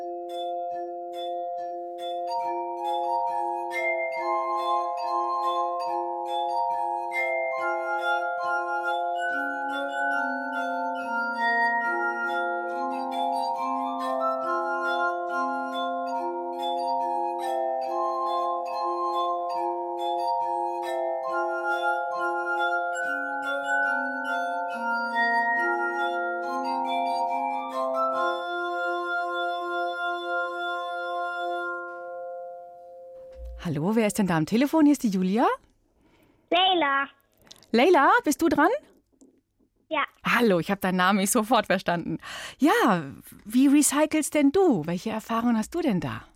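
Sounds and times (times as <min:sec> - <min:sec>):
musicians playing glass instruments: 0:00.0 - 0:35.0
speech: 0:33.9 - 0:35.6, 0:37.7 - 0:38.8, 0:40.4 - 0:46.3.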